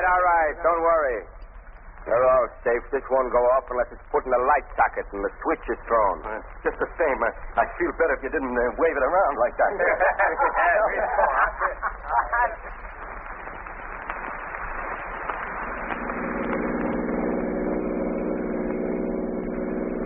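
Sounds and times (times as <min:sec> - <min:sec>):
car engine rumbling, driving then pulling over to idle: 0:00.0 - 0:20.0
speech: 0:00.1 - 0:13.0
laughter: 0:08.9 - 0:13.1.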